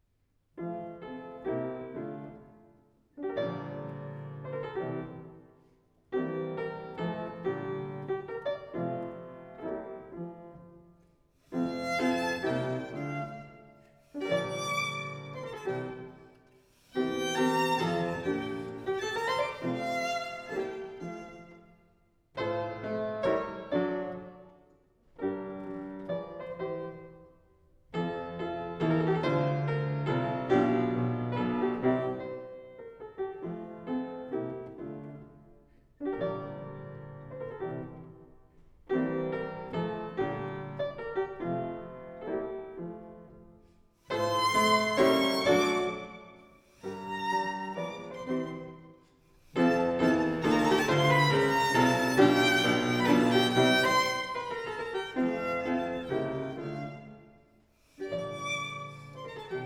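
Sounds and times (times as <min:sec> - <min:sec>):
violin and piano sonata in F major minuet tempo: 0:00.6 - 0:59.6.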